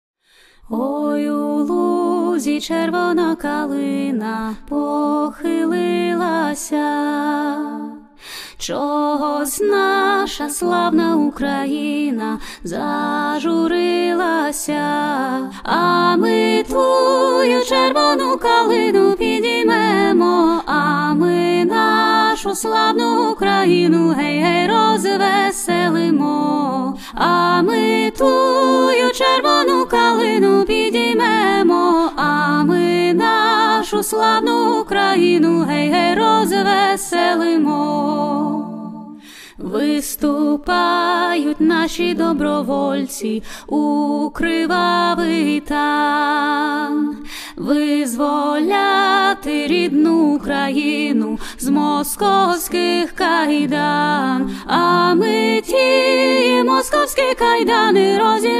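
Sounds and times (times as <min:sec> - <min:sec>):
Ukrainian patriotic folk song: 0:00.8 - 0:58.5.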